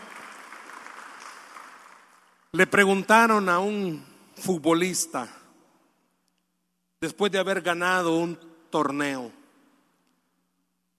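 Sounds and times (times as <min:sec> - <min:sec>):
audience applause: 0:00.0 - 0:02.4
speech: 0:02.5 - 0:05.4, 0:07.0 - 0:09.4.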